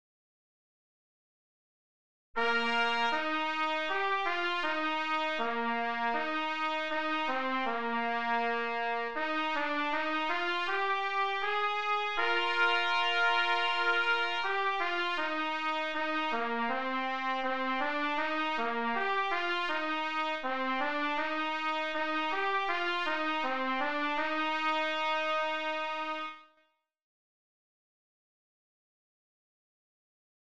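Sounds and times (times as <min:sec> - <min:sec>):
trumpet: 0:02.4 - 0:26.7.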